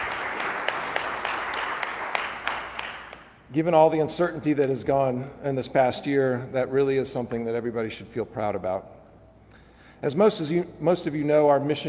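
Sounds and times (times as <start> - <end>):
audience applause: 0.0 - 3.2
speech: 3.5 - 9.0, 10.0 - 11.8.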